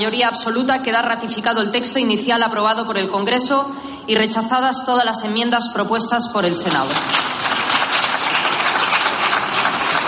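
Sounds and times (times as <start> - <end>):
speech: 0.0 - 7.3
crowd in a parliament chamber giving lukewarm applause: 6.8 - 10.0.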